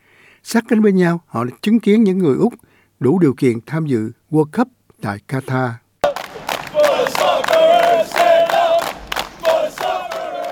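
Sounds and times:
speech: 0:00.4 - 0:05.8
football crowd cheering and shouting: 0:06.0 - 0:10.5.

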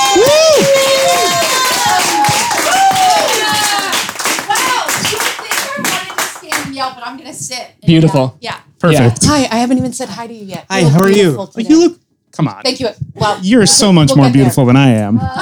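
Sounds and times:
audience applause: 0:00.0 - 0:06.8
speech: 0:07.4 - 0:15.4.

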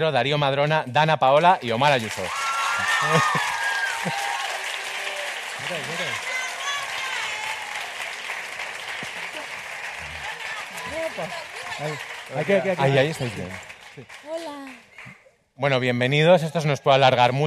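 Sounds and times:
speech: 0:00.0 - 0:04.3, 0:05.6 - 0:06.3, 0:11.2 - 0:17.4
crowd applause: 0:01.9 - 0:15.2
laughter: 0:02.8 - 0:04.4, 0:08.9 - 0:13.6.

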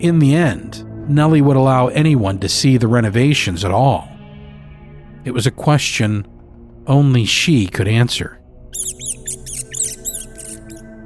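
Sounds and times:
speech: 0:00.0 - 0:04.1, 0:05.2 - 0:09.0
rat squealing echoing through a nave: 0:08.7 - 0:10.9.

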